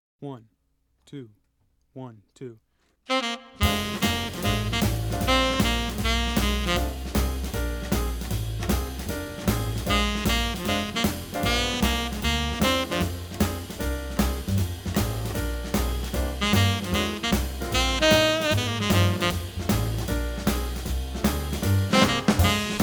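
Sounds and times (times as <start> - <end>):
shuffle rhythm music in F: 3.6 - 22.8.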